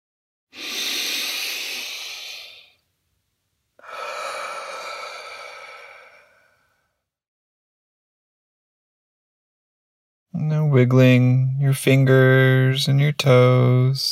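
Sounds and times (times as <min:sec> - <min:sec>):
deep breath: 0:00.5 - 0:02.9, 0:03.8 - 0:07.1
speech: 0:10.4 - 0:14.1.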